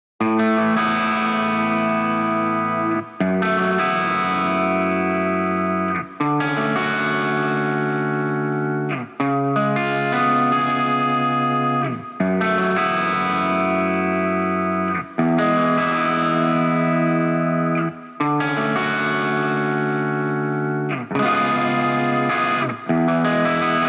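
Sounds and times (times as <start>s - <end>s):
guitar: 0.2s - 23.8s.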